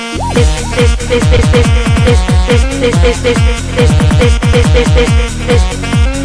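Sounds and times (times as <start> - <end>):
drunken ringtone: 0.2 - 6.1.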